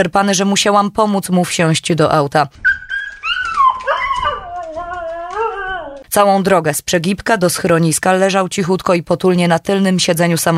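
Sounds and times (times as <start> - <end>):
speech: 0.0 - 2.8, 6.1 - 10.5
dog whimpering: 2.6 - 6.1.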